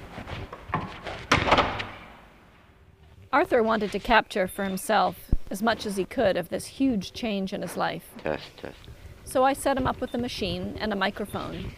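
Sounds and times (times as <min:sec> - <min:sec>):
apartment door closing with a solid thud: 0:00.7 - 0:02.1
speech: 0:03.3 - 0:11.7.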